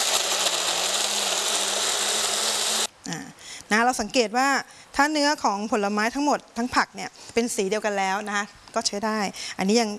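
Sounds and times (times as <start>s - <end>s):
electric blender puréeing fruit and vegetables: 0.0s - 2.9s
speech: 3.1s - 9.9s.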